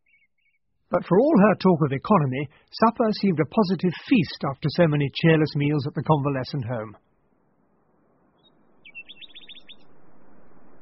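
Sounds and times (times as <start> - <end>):
speech: 0.9 - 7.0
nightingales singing at night: 8.4 - 9.9.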